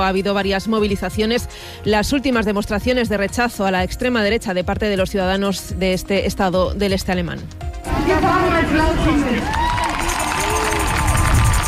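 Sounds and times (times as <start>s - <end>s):
speech: 0.0s - 9.8s
crowd in front of a stage applauding speeches: 8.9s - 11.6s.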